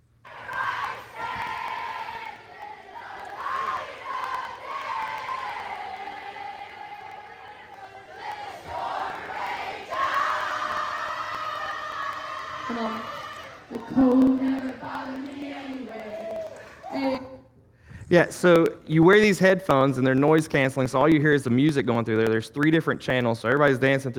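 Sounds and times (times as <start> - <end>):
crowd shouting and cheering at a silent disco: 0.0 - 17.6
speech: 18.1 - 24.1.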